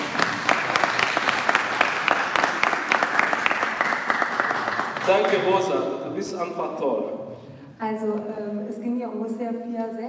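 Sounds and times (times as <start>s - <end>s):
audience applause at a church-style talk: 0.0s - 5.9s
speech: 5.1s - 7.2s, 7.8s - 10.0s.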